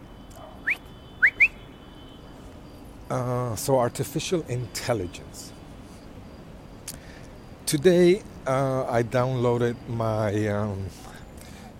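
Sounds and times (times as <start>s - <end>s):
whistling to call a dog: 0.0s - 2.3s
speech: 3.1s - 5.6s, 7.7s - 11.1s.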